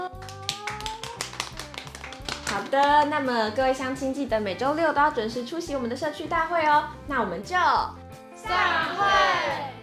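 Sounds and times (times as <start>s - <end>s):
audience clapping hands: 0.0s - 3.3s
speech: 2.5s - 9.7s.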